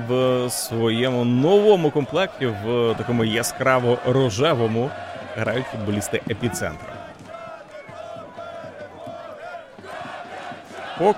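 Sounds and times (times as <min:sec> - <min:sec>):
local crowd cheering for home team: 0:00.0 - 0:11.1
speech: 0:00.1 - 0:07.0, 0:11.0 - 0:11.1.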